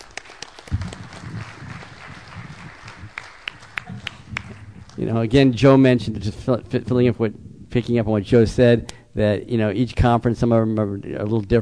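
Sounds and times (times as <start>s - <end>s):
audience applause: 0.0s - 5.2s
speech: 5.0s - 11.6s.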